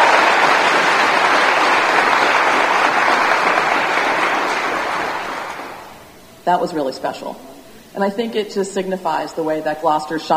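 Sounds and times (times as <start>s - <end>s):
audience applause: 0.0s - 6.0s
speech: 6.5s - 10.3s.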